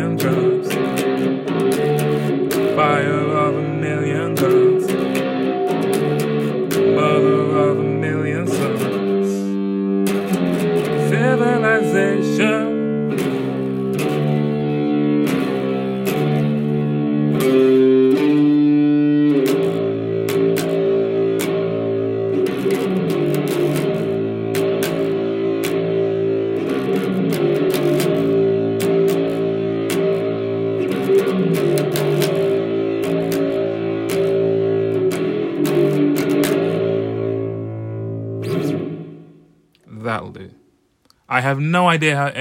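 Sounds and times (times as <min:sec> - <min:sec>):
loud distorted bass music: 0:00.0 - 0:39.6
speech: 0:41.5 - 0:42.3.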